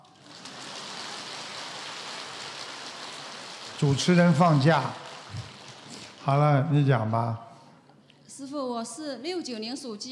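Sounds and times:
audience applause: 0.0s - 7.3s
speech: 3.8s - 5.0s, 6.3s - 7.5s, 8.3s - 10.1s.

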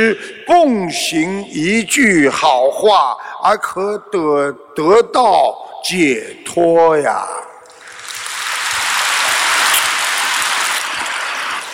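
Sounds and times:
speech: 0.0s - 7.5s
audience applause: 7.7s - 11.7s.

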